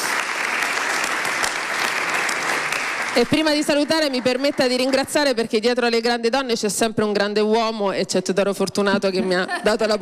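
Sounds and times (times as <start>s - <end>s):
sustained applause from a large audience: 0.0s - 5.3s
speech: 3.2s - 10.0s.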